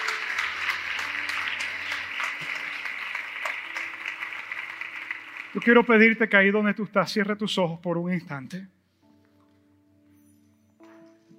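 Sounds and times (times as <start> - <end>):
audience applause: 0.0 - 6.5
speech: 5.5 - 8.8.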